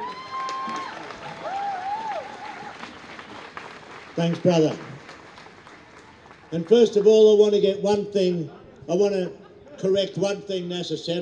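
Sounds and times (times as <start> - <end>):
audience applause: 0.0 - 7.1
speech: 4.2 - 4.9, 6.5 - 11.2.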